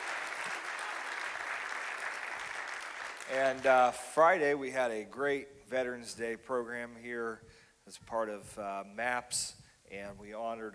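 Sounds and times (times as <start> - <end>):
audience applause welcoming first-time guests: 0.0 - 4.0
speech: 3.3 - 10.7.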